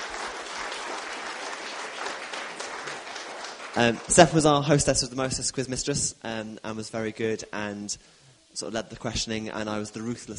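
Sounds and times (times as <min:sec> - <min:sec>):
audience round of applause: 0:00.0 - 0:04.6
speech: 0:03.8 - 0:10.3.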